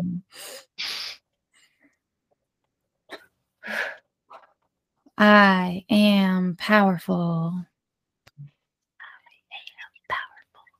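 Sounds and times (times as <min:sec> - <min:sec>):
deep breaths between mantra repetitions: 0:03.6 - 0:04.1
speech: 0:05.2 - 0:07.7.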